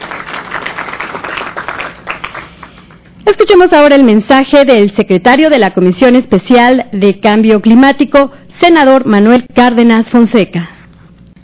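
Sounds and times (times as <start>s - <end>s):
crowd applauding: 0.0s - 3.1s
speech: 3.3s - 10.8s.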